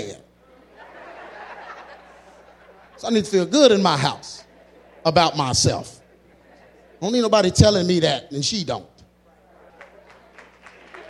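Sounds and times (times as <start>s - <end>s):
laughter: 0.4s - 8.0s, 9.2s - 11.0s
speech: 3.0s - 6.0s, 7.0s - 8.9s
hand clap: 9.8s - 11.0s.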